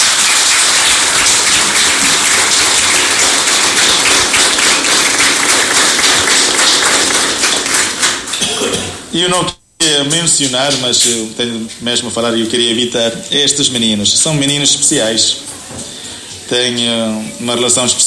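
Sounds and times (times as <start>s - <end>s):
audience clapping: 0.0s - 8.5s
speech: 9.2s - 15.9s, 16.5s - 18.0s.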